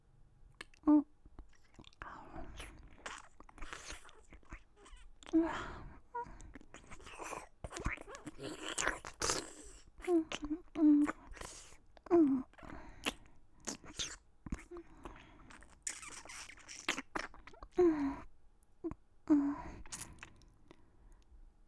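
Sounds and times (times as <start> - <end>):
soft biting sounds: 0.6 - 5.7, 6.4 - 17.8, 19.8 - 20.6.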